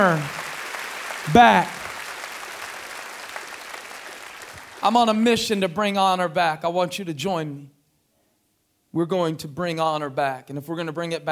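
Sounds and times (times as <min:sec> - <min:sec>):
speech: 0:00.0 - 0:00.4, 0:01.2 - 0:01.8, 0:04.8 - 0:07.8, 0:08.9 - 0:11.3
church congregation clapping during a sermon: 0:00.0 - 0:05.6.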